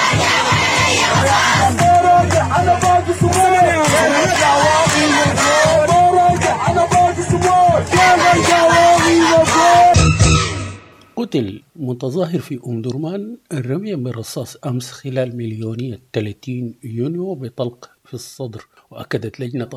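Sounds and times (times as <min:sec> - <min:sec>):
protesters chanting slogans in Khartoum during a mass demonstration: 0:00.0 - 0:10.1
speech: 0:11.2 - 0:19.7.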